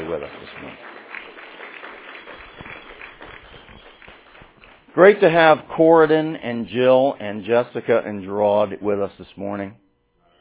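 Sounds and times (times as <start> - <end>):
people clapping: 0.0 - 5.6
speech: 0.1 - 0.9, 5.0 - 9.8.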